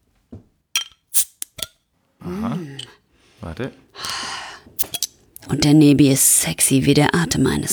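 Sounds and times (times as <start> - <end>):
glass clinks and metallic taps opening a Witchwood King Goblin beer bottle: 0.8 - 1.8, 4.8 - 5.2
Witchwood King Goblin beer bottle hissing open: 1.1 - 1.7, 4.0 - 5.2
speech: 3.5 - 3.9, 5.5 - 7.7.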